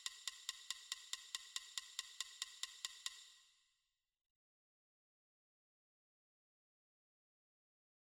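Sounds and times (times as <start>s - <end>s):
metronome ticking at 280 bpm: 0.0s - 3.3s.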